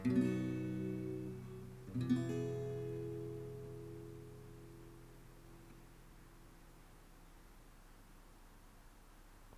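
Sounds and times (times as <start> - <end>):
acoustic guitar accompaniment: 0.0 - 6.6.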